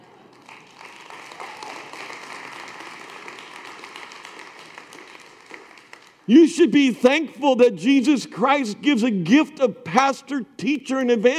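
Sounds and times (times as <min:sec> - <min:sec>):
audience applause: 0:00.0 - 0:06.2
speech: 0:06.3 - 0:11.3.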